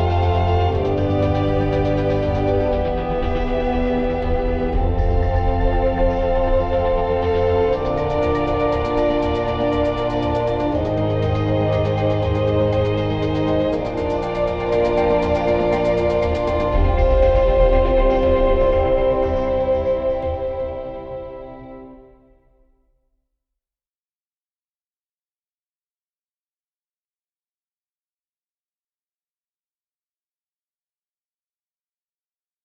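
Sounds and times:
ambient music: 0.0 - 22.8.

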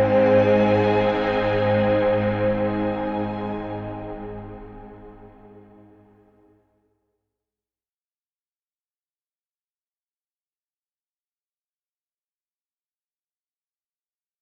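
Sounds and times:
ambient music: 0.0 - 6.5.

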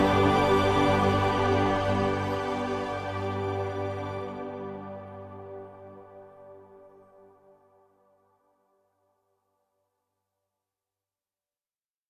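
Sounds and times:
ambient music: 0.0 - 8.4.

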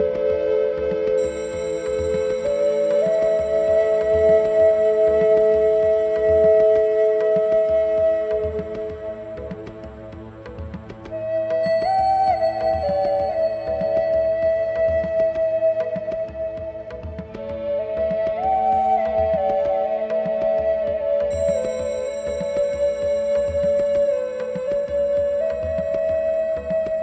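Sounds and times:
Native American flute playing: 0.0 - 27.0.

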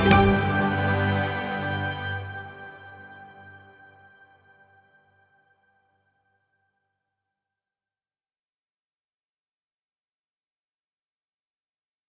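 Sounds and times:
stylish ambient music: 0.0 - 5.6.

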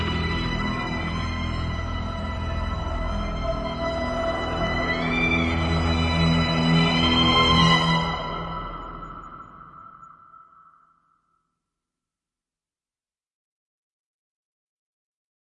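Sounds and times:
dark ambient music: 0.0 - 11.1.

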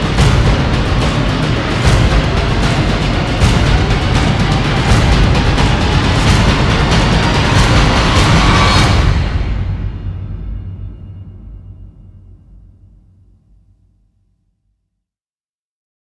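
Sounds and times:
drums: 0.0 - 12.7.

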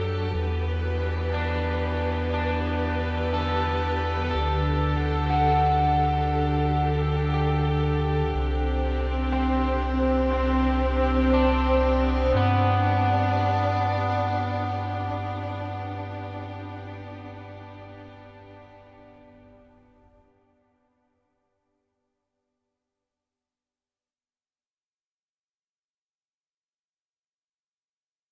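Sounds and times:
ambient music: 0.0 - 21.1.

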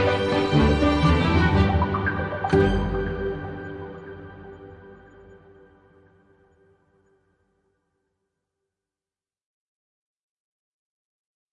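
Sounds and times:
playful ambient music: 0.0 - 7.2.

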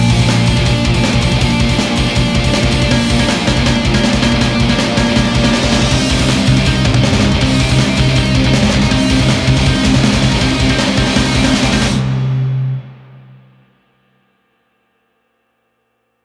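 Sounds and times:
band playing: 0.0 - 12.8.

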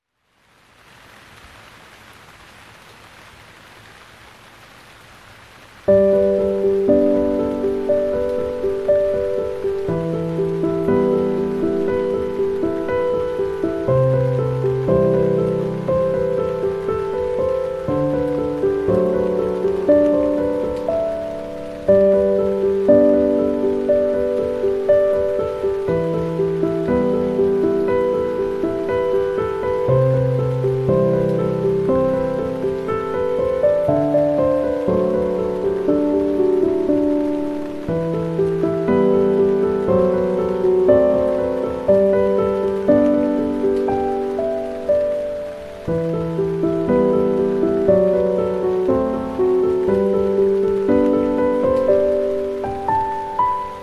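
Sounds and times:
rain: 0.0 - 53.8
piano: 5.0 - 53.8.

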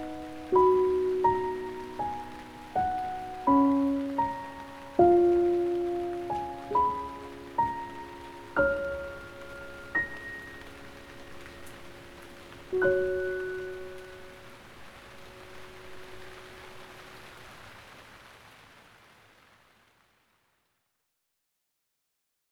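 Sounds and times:
calming piano lullaby: 0.0 - 17.5
rain: 0.0 - 20.9.

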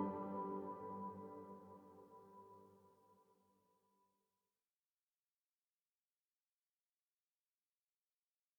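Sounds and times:
beautiful ambient music: 0.0 - 2.0.

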